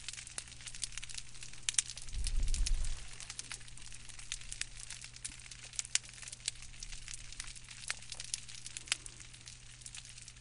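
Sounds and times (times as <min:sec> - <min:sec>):
small crustaceans crackling and popping on an intertidal algal reef: 0:00.0 - 0:10.3
steady low hum: 0:00.0 - 0:10.3
low rumble: 0:01.6 - 0:04.8.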